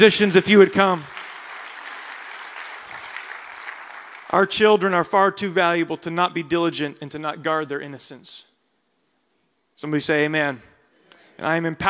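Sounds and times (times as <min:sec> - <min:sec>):
speech: 0:00.0 - 0:01.1, 0:04.3 - 0:08.5, 0:09.8 - 0:10.7, 0:11.4 - 0:11.8
crowd clapping: 0:00.1 - 0:04.6.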